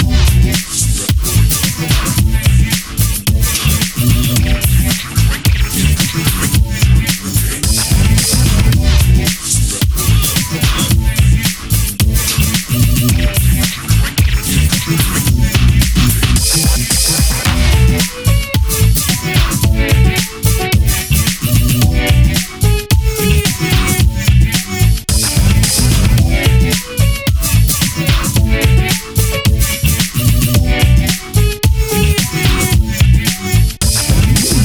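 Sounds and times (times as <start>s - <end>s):
turntable scratching loop: 0.0s - 34.6s.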